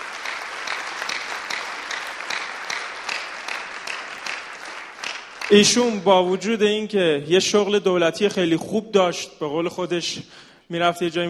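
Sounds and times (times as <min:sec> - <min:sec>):
audience applause for an honoured guest: 0:00.0 - 0:06.1
speech: 0:05.5 - 0:11.2.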